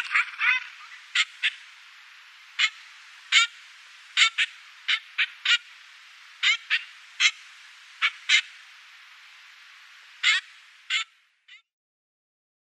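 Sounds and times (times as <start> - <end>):
Trumpeter finch calls: 0.0 - 1.7, 2.5 - 5.7, 6.4 - 8.6, 10.2 - 11.6.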